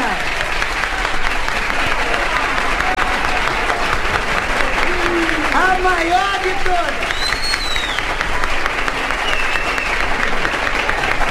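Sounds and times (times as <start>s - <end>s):
long round of applause: 0.0s - 11.2s.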